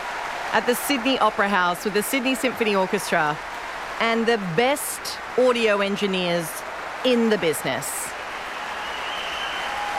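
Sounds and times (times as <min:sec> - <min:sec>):
crowd applauding and cheering: 0:00.0 - 0:04.6, 0:08.1 - 0:09.9
speech: 0:00.5 - 0:08.0.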